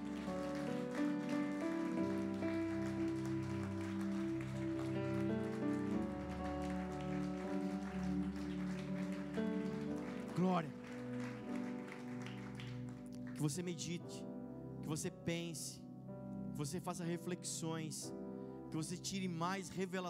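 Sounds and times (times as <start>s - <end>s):
sustained instrumental chords: 0.0s - 12.2s
audience applauding loudly: 0.0s - 13.7s
speech: 10.4s - 10.8s, 13.4s - 14.3s, 14.9s - 15.8s, 16.6s - 20.0s.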